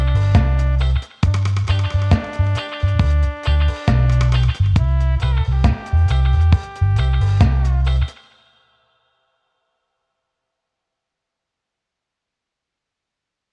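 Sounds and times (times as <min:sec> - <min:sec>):
old style dub music: 0:00.0 - 0:08.2.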